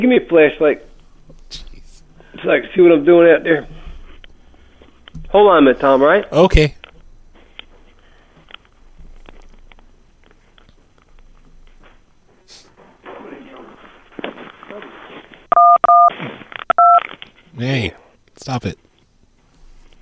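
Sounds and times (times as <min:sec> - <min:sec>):
speech: 0:00.0 - 0:00.9, 0:02.4 - 0:03.8, 0:05.3 - 0:06.8, 0:17.6 - 0:18.8
telephone touch tones: 0:15.5 - 0:17.0.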